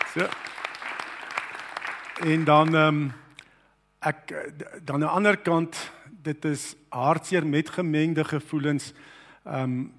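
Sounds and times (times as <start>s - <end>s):
audience hand clapping: 0.0s - 3.2s
speech: 0.2s - 0.5s, 2.2s - 3.2s, 4.0s - 9.9s.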